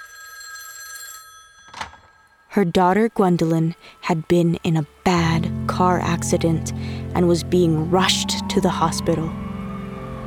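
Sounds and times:
telephone ringing: 0.0 - 2.6
speech: 2.6 - 9.4.

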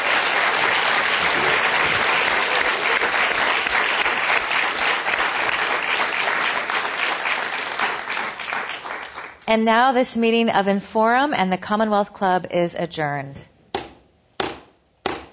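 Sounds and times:
audience applause: 0.0 - 9.4
speech: 9.5 - 13.5.

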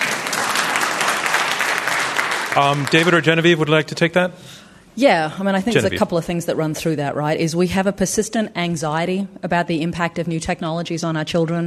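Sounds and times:
audience clapping during a panel discussion: 0.0 - 3.8
speech: 2.6 - 11.6.

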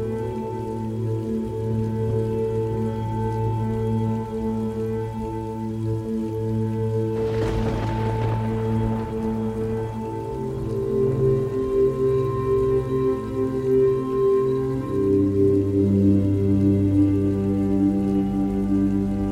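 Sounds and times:
steady rain pattering: 0.0 - 19.3
sharp crack of thunder: 7.2 - 10.2.

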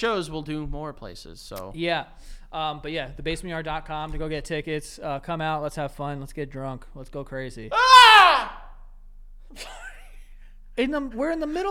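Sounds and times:
speech: 0.0 - 8.6, 9.5 - 9.9, 10.8 - 11.6
person screaming: 7.7 - 8.7.

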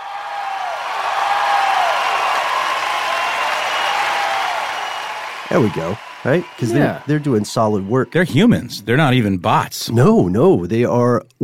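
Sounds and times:
crowd applause: 0.0 - 8.8
speech: 5.5 - 11.4.

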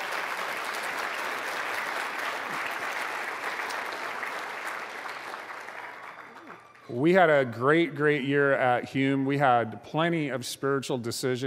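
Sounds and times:
audience of parents applauding volunteers: 0.0 - 7.0
speech: 6.9 - 11.4.

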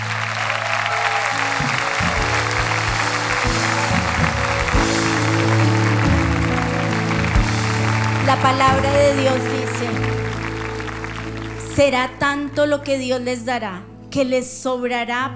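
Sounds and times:
audience applause: 0.0 - 12.1
sustained low keyboard chords: 0.0 - 15.3
speech: 8.4 - 10.2, 11.8 - 15.3.

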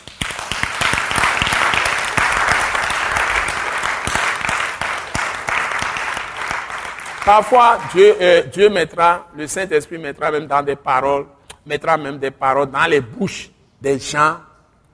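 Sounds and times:
church congregation applauding: 0.0 - 8.0
speech: 7.3 - 14.5.

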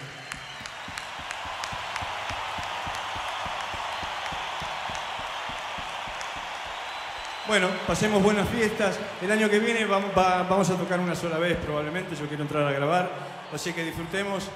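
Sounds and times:
concert audience applause: 0.0 - 10.4
speech: 7.5 - 14.5.

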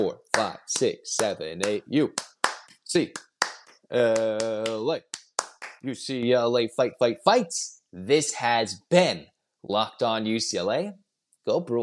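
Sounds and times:
speech: 0.0 - 2.3, 2.9 - 3.3, 3.9 - 5.2, 5.8 - 11.8
rhythmic eight-count clapping: 0.0 - 6.0.

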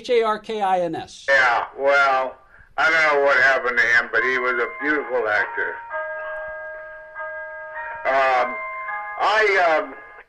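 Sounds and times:
speech: 0.0 - 5.8, 8.1 - 8.6, 9.2 - 10.0
clock chiming: 3.6 - 10.2.

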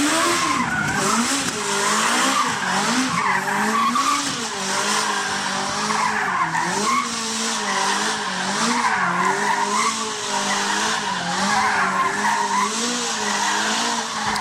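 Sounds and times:
stunt car engine roaring: 0.0 - 14.3
stunt car tires squealing doing donuts: 0.0 - 14.3.

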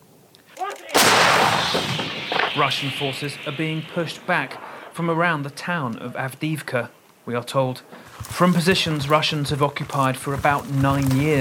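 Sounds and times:
artillery shells landing and exploding over the hills: 0.9 - 5.8
speech: 2.6 - 11.3.

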